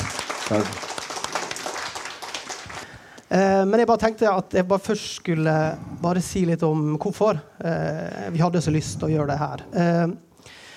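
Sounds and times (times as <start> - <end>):
audience clapping: 0.0 - 3.3
speech: 0.5 - 0.9, 3.3 - 10.3.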